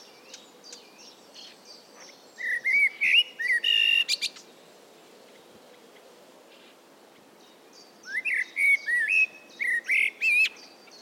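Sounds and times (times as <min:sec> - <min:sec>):
common blackbird song: 0:00.0 - 0:04.7, 0:07.4 - 0:10.9.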